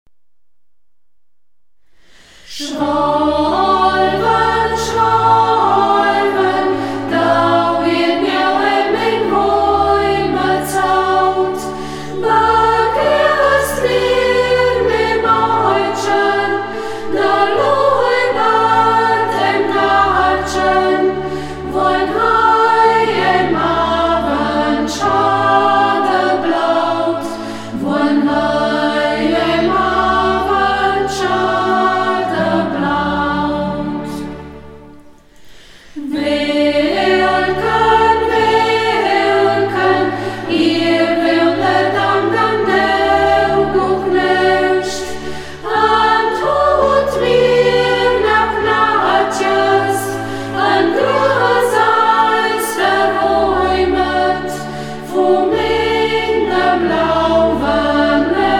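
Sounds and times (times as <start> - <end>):
choir singing in dialect: 2.4 - 58.5.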